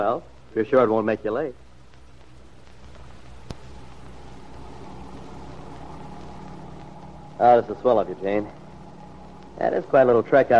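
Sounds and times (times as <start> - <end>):
speech: 0.0 - 1.6, 7.4 - 8.6, 9.6 - 10.5
old jalopy car engine idling: 0.0 - 10.5
sharp tick: 1.6 - 9.7.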